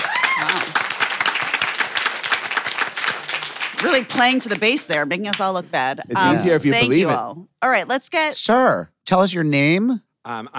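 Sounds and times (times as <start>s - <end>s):
audience applause: 0.0s - 4.6s
speech: 3.8s - 10.5s.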